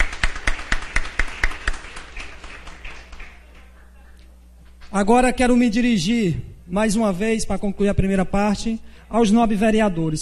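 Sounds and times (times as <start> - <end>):
applause in council chamber: 0.0 - 4.0
speech: 4.9 - 10.2.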